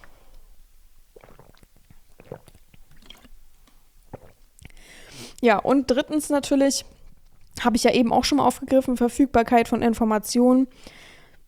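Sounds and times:
person drinking, swallowing and gulping: 1.0s - 4.9s
speech: 5.4s - 7.0s, 7.6s - 11.0s.

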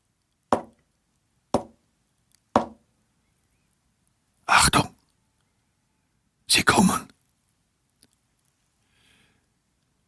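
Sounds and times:
quiet knocks: 0.6s - 0.8s, 1.6s - 1.8s, 2.6s - 2.8s.

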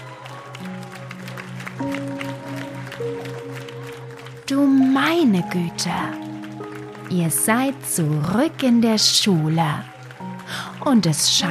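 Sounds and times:
crowd cheering wildly: 0.0s - 4.4s, 9.3s - 11.2s
speech: 4.5s - 6.2s, 7.1s - 9.9s, 10.8s - 11.5s.

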